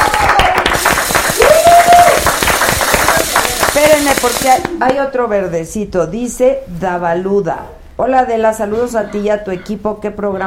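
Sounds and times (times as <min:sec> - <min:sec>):
applause: 0:00.0 - 0:04.7
speech: 0:04.1 - 0:10.4.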